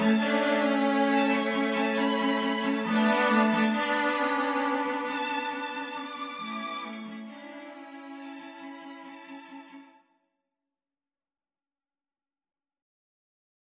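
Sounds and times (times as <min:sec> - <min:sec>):
string quintet playing: 0:00.0 - 0:09.8.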